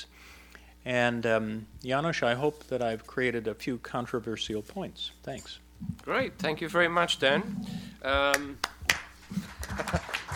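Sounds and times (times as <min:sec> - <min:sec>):
speech: 0:00.8 - 0:08.7, 0:09.8 - 0:10.1
sparse hand claps from a small panel discussion audience: 0:08.3 - 0:10.3.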